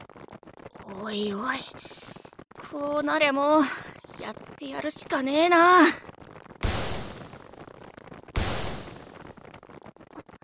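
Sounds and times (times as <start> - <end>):
speech: 0.9 - 6.1
sniper gunshots: 6.6 - 7.7, 8.3 - 9.6.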